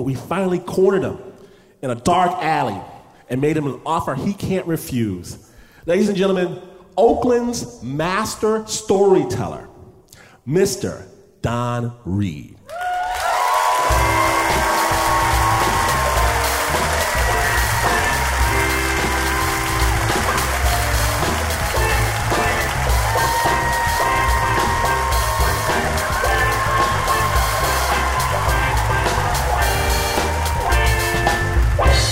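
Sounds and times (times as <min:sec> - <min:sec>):
speech: 0:00.0 - 0:09.7, 0:10.4 - 0:12.8
audience clapping and cheering: 0:12.6 - 0:32.1
music: 0:13.4 - 0:32.1.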